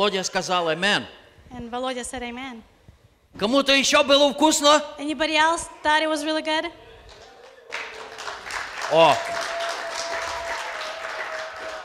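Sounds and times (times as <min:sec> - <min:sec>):
speech: 0:00.0 - 0:02.7, 0:03.3 - 0:06.9, 0:08.9 - 0:09.4
gathering applauding to thank the cooks: 0:07.1 - 0:11.8.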